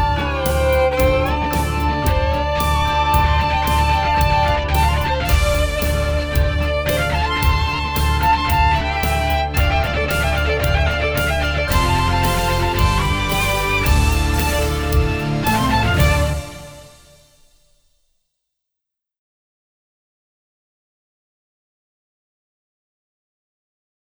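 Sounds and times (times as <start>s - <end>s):
guitar power chords: 0.0s - 17.3s.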